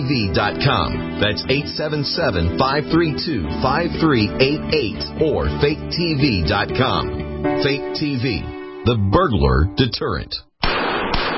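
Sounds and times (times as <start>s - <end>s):
speech: 0.1s - 10.5s
.44 Magnum gunshot hitting Trauma Max hybrid Kevlar bulletproof vest: 10.6s - 11.3s.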